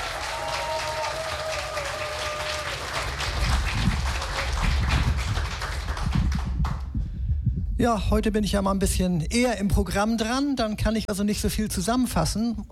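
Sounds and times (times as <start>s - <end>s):
audience applause welcoming a performer: 0.0s - 6.8s
speech: 7.8s - 12.7s.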